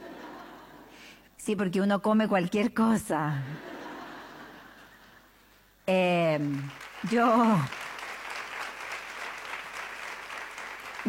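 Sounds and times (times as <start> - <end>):
speech: 1.5 - 3.7, 5.9 - 7.8
crowd clapping: 6.3 - 11.0.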